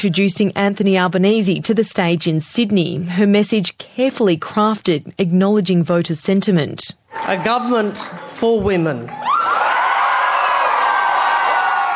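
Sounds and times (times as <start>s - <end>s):
speech: 0.0s - 9.6s
rowdy excited crowd cheering: 7.1s - 11.9s.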